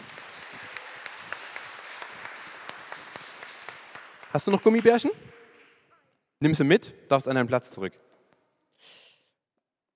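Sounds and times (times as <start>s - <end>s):
audience applause: 0.0s - 5.7s
speech: 4.4s - 5.4s, 6.4s - 8.1s.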